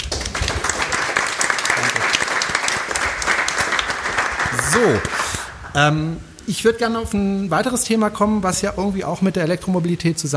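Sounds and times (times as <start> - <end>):
audience applause: 0.0 - 5.8
speech: 4.8 - 5.2, 5.8 - 10.3.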